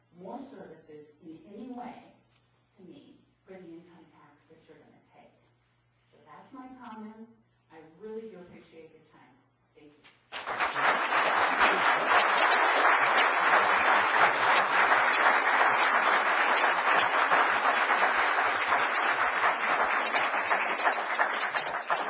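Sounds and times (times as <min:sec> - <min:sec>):
audience applause: 0:10.4 - 0:22.0.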